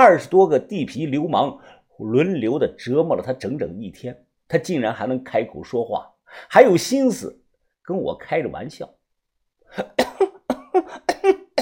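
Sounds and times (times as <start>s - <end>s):
speech: 0.0s - 9.0s, 9.7s - 11.4s
repeated coughing: 9.7s - 11.5s.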